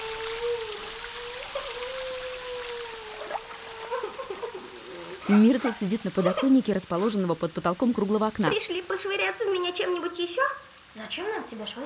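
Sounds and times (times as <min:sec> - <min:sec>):
water pouring from overflowing sinks onto the floor: 0:00.0 - 0:11.0
speech: 0:05.3 - 0:11.8.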